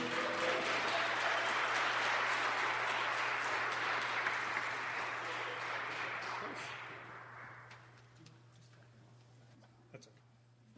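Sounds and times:
audience applause welcoming a musician to the stage: 0.0 - 8.0.

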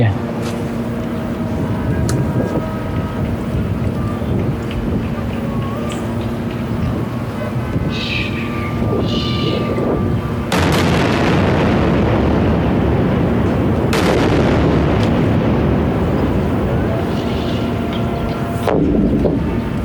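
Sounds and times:
explosions from an Israeli attack in the Gaza Strip: 0.0 - 19.8.

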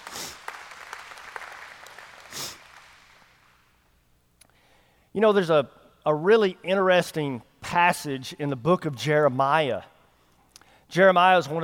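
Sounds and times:
audience hand clapping: 0.0 - 3.7
speech: 5.2 - 9.9, 10.9 - 11.6.

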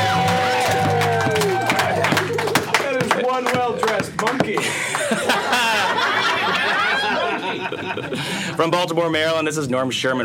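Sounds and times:
crowd whooping: 0.0 - 3.8, 4.7 - 7.7
crowd clapping for the cast of a spoken drama show: 0.0 - 7.2
laughter: 1.4 - 8.7
speech: 8.6 - 10.2.

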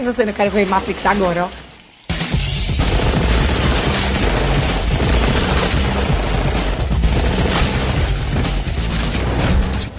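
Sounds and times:
speech: 0.0 - 1.6
gunfire in a film fight scene: 2.7 - 9.7.

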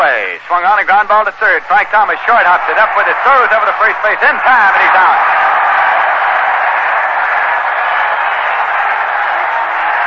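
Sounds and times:
baseball crowd applauding: 0.0 - 10.0
murmuring cheers of baseball crowd: 0.0 - 10.0
speech: 0.5 - 5.4.

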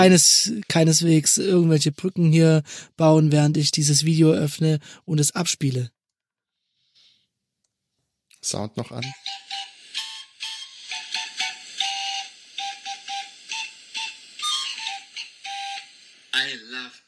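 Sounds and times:
speech: 0.0 - 6.0, 8.4 - 9.5
modular paper organ being played: 8.9 - 16.2
steady airy hiss: 9.7 - 16.8.

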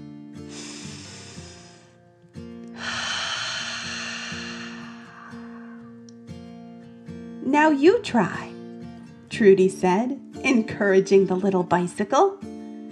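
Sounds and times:
gentle music: 0.0 - 12.8
long hissing exhale like a fire-breathing dragon: 0.4 - 2.1, 2.7 - 6.0
slow deep breath in: 0.5 - 2.0, 2.7 - 6.0
speech: 7.5 - 8.5, 9.4 - 12.5.

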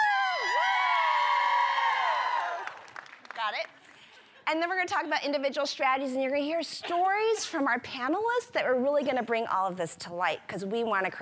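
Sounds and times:
crowd cheering and whooping: 0.0 - 3.0
speech: 3.5 - 3.8, 4.5 - 11.2.

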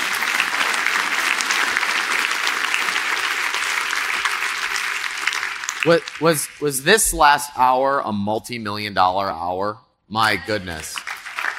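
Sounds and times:
crowd applause: 0.0 - 7.0, 10.2 - 11.5
speech: 5.8 - 11.1.

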